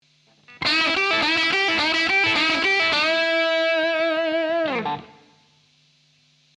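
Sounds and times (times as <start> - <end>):
blues guitar lick: 0.4 - 5.4.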